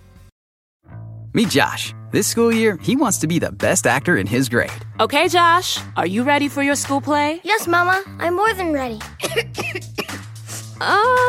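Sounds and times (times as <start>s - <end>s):
speech: 1.4s - 9.9s, 10.8s - 11.2s
child coughing: 9.2s - 10.2s.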